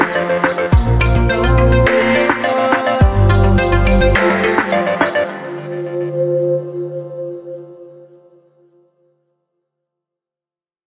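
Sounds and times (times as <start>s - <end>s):
innovative tech music: 0.0s - 8.0s.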